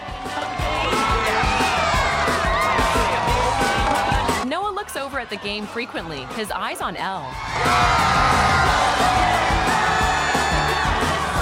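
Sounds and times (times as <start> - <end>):
many overlapping shouting voices at a beach party: 0.0 - 4.4, 7.3 - 11.4
party crowd cheering at a flip-cup drinking game at a beach party: 0.0 - 4.4, 7.2 - 11.4
speech: 0.2 - 0.6, 4.8 - 9.8.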